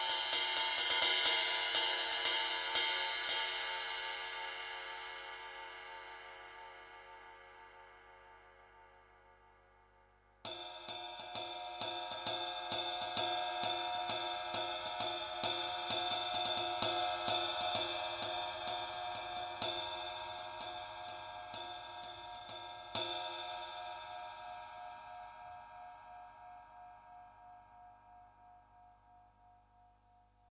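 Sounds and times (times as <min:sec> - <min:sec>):
ride cymbals: 0:00.0 - 0:07.9, 0:10.5 - 0:25.3.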